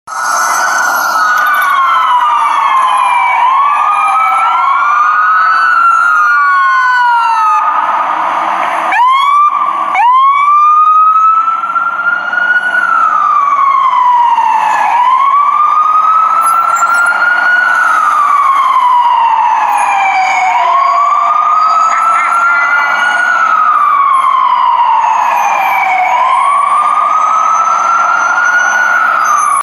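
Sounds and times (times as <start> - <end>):
ambulance siren: 0.1 - 29.6.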